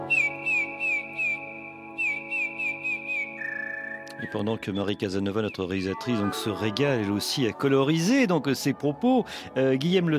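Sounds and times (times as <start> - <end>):
song thrush singing loud fluty whistled notes: 0.1 - 4.8
speech: 4.2 - 10.1.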